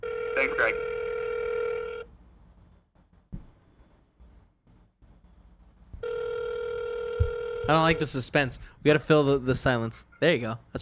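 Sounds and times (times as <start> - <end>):
outgoing phone call ringback tone: 0.0 - 2.0, 6.0 - 8.0
speech: 7.7 - 10.8.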